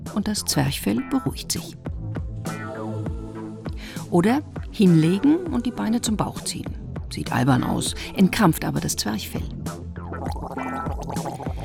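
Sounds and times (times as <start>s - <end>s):
speech: 0.2s - 1.9s, 4.1s - 9.6s
person gargling with cold water: 10.2s - 11.6s.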